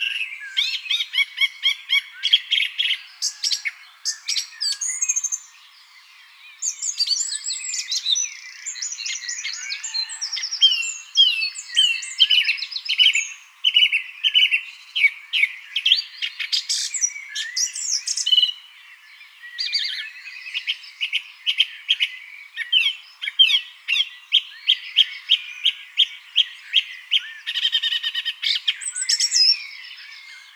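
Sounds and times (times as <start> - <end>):
Turdus philomelos singing: 0.0 - 30.5.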